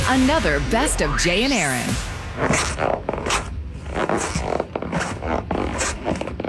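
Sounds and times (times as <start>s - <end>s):
speech: 0.1s - 3.4s
skin squeaking and rubbing against a leather chair: 2.4s - 6.4s.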